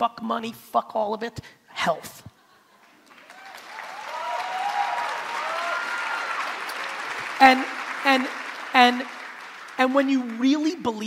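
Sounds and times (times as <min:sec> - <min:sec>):
speech: 0:00.0 - 0:02.3, 0:07.4 - 0:09.2, 0:09.8 - 0:11.0
audience clapping: 0:02.8 - 0:11.0.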